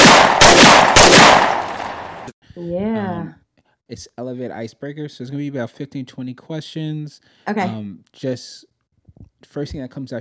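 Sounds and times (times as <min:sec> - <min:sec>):
gunshots sound effect: 0:00.0 - 0:02.3
speech: 0:02.6 - 0:08.7, 0:09.4 - 0:10.1.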